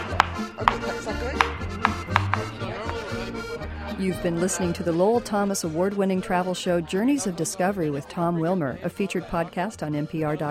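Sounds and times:
knife chopping fast on a cutting board: 0.0 - 3.0
speech: 4.0 - 10.4.

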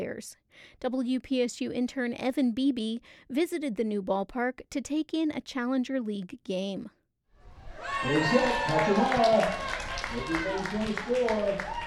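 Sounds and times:
speech: 0.0 - 7.0, 7.8 - 11.8
crowd cheering at a baseball game: 7.4 - 11.8.

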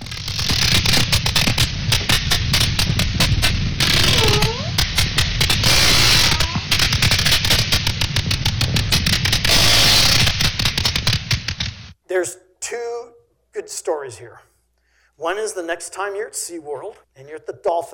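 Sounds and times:
sperm whale clicks: 0.0 - 11.9
speech: 14.1 - 14.6, 15.2 - 17.9.

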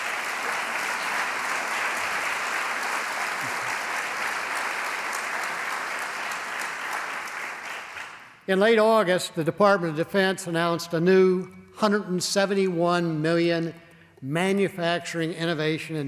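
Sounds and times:
audience applause: 0.0 - 8.3
speech: 8.5 - 16.0.

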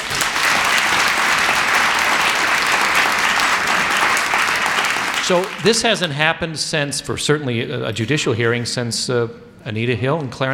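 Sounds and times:
sustained audience applause: 0.0 - 6.1
speech: 5.3 - 10.5.

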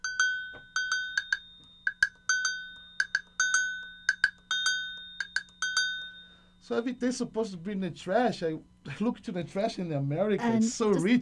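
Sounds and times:
homemade percussion of PVC pipe, broken bell and jam block: 0.0 - 6.8
speech: 6.7 - 11.2.

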